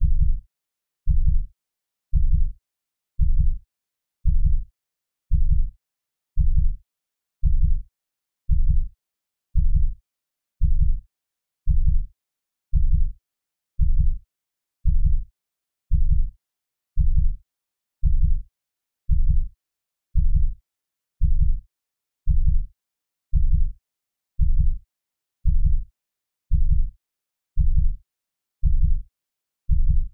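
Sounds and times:
heartbeat: 0:00.0 - 0:00.4, 0:01.1 - 0:01.5, 0:02.1 - 0:02.6, 0:03.2 - 0:03.6, 0:04.2 - 0:04.7, 0:05.3 - 0:05.7, 0:06.4 - 0:06.8, 0:07.4 - 0:07.8, 0:08.5 - 0:08.9, 0:09.6 - 0:10.0, 0:10.6 - 0:11.0, 0:11.7 - 0:12.1, 0:12.7 - 0:13.2, 0:13.8 - 0:14.2, 0:14.8 - 0:15.3, 0:15.9 - 0:16.3, 0:17.0 - 0:17.4, 0:18.0 - 0:18.4, 0:19.1 - 0:19.5, 0:20.2 - 0:20.6, 0:21.2 - 0:21.6, 0:22.3 - 0:22.7, 0:23.3 - 0:23.8, 0:24.4 - 0:24.8, 0:25.4 - 0:25.9, 0:26.5 - 0:26.9, 0:27.6 - 0:28.0, 0:28.6 - 0:29.0, 0:29.7 - 0:30.1.

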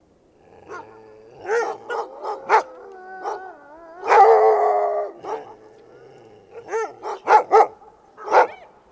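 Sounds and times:
dog barking: 0:01.4 - 0:03.4, 0:04.0 - 0:04.4, 0:05.2 - 0:05.6, 0:06.6 - 0:08.7.

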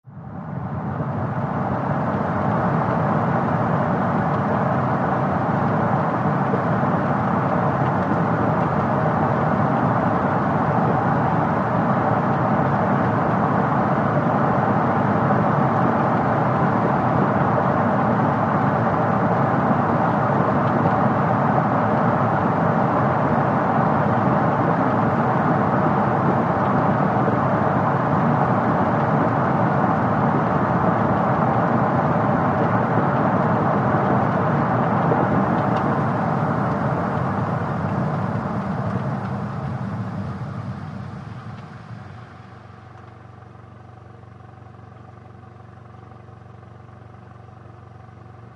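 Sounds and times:
sedan driving and stopping: 0:00.6 - 0:48.5.

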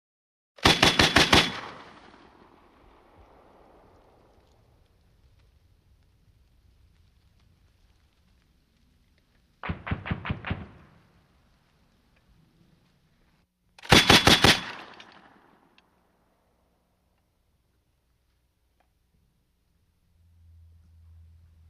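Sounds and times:
M60 machine gun fire outdoors: 0:00.6 - 0:02.3, 0:09.6 - 0:11.0, 0:13.8 - 0:15.5.

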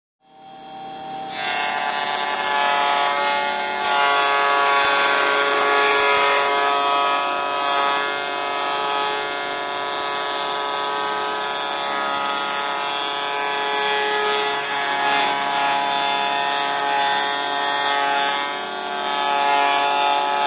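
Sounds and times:
wood shaper shaping wood with high pitched whine: 0:01.3 - 0:20.4.

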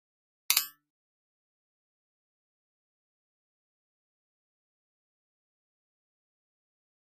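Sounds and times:
button toy drum hit: 0:00.5 - 0:00.7.

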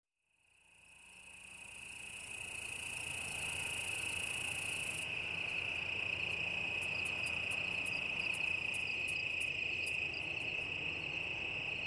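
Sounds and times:
cicada song high-pitched drone: 0:00.4 - 0:11.8.

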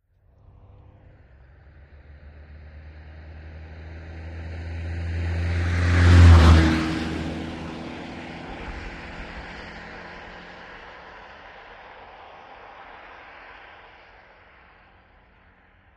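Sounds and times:
Austin Montego car passing by: 0:00.3 - 0:15.9.

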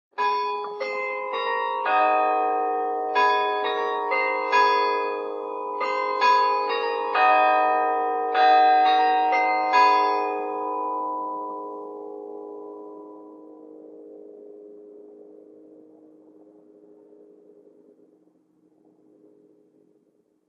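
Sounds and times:
tower clock chimes from bell towers exterior: 0:00.2 - 0:13.7.

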